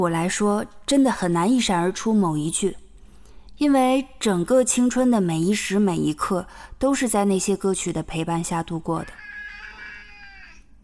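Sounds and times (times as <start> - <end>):
speech: 0.0 - 2.8, 3.6 - 9.3
cat meowing: 9.0 - 10.6.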